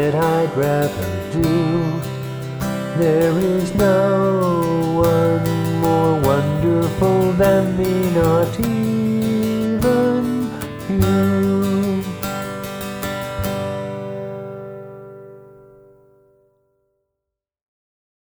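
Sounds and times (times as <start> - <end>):
crane song practice: 0.0 - 12.7.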